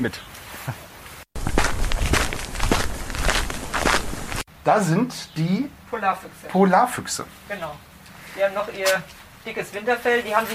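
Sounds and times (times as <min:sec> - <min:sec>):
speech: 0:00.0 - 0:00.9, 0:04.7 - 0:10.5
footsteps on a hard path through a zoo: 0:01.4 - 0:04.5.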